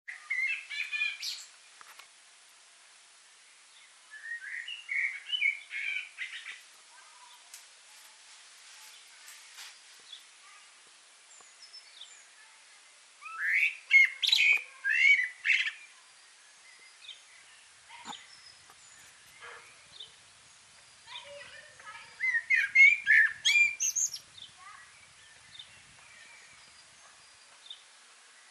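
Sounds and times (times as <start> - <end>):
quiet birdsong: 0.1 - 28.4
common blackbird song: 4.1 - 6.6, 13.2 - 28.4.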